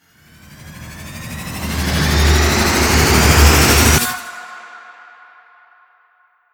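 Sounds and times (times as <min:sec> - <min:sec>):
riser sweep: 0:00.2 - 0:04.3.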